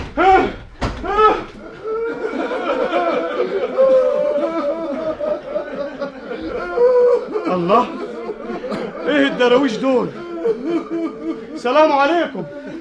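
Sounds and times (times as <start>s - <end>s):
door being forced open in an Egyptian radio drama: 0.0s - 1.8s
laughter: 0.0s - 12.7s
speech: 7.7s - 8.0s, 9.4s - 11.0s, 11.6s - 12.6s.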